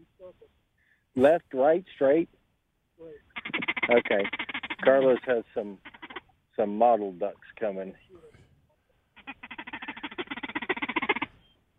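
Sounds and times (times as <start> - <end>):
speech: 1.2 - 2.4, 3.0 - 5.9, 6.6 - 8.2
turkey gobble made on a shaker call: 3.3 - 6.4, 9.1 - 11.6.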